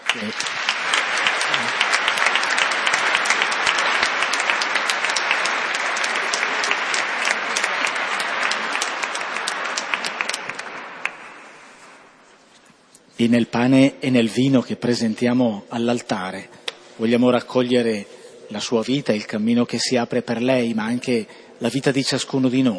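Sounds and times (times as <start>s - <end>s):
audience applause: 0.0s - 12.2s
speech: 0.1s - 0.6s, 13.2s - 22.7s.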